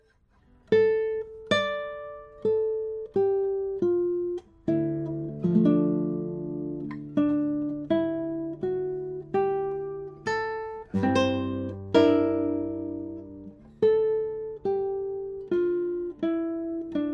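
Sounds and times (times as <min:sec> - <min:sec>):
classical prototype maple guitar: 0:00.0 - 0:17.1.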